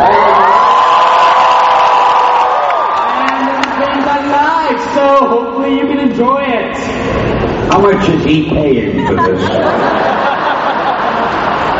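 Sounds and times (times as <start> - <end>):
large crowd cheering: 0.0 - 5.0, 9.6 - 11.7
speech: 4.7 - 10.3
laughter: 8.8 - 11.7.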